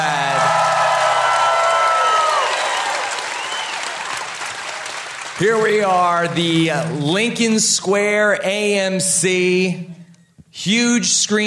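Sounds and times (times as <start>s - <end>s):
whoops and shouts: 0.0s - 4.0s
crowd applause: 0.0s - 7.0s
speech: 5.4s - 10.0s, 10.6s - 11.4s.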